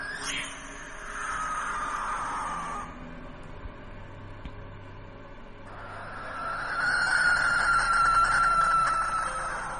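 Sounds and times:
barn owl screeching: 0.0 - 3.0, 5.7 - 9.7.

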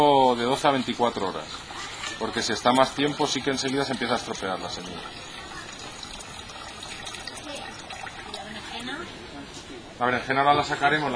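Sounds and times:
speech: 0.0 - 5.3, 10.0 - 11.1
water splashing in a container rinsing extracted vegetable seeds: 0.0 - 9.0.

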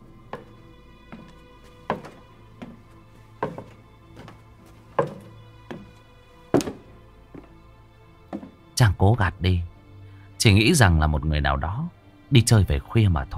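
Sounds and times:
footsteps in a hallway: 0.3 - 7.6, 8.3 - 8.6
speech: 8.9 - 9.7, 10.4 - 13.3.

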